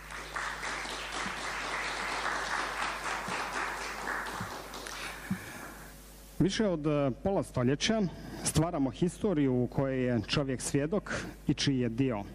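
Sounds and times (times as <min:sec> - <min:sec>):
audience applause after a live folk suite performance at a cultural gathering: 0:00.0 - 0:05.6
speech: 0:06.4 - 0:12.3.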